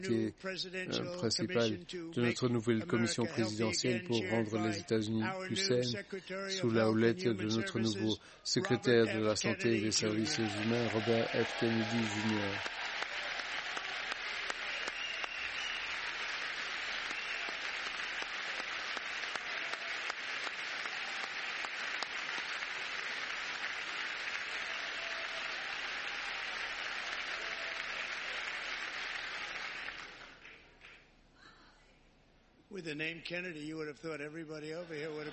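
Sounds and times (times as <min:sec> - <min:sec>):
speech: 0:00.0 - 0:12.8, 0:32.9 - 0:35.3
crowd applause: 0:08.7 - 0:31.0.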